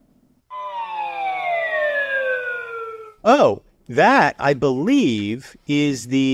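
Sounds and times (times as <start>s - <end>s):
Wheel of Fortune bankrupt sound effect, buzzy harmonic synth tone: 0.5s - 3.3s
speech: 3.2s - 6.3s.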